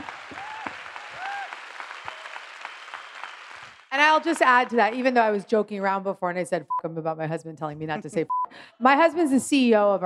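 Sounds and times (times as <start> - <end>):
applause: 0.0 - 5.2
speech: 4.0 - 10.0.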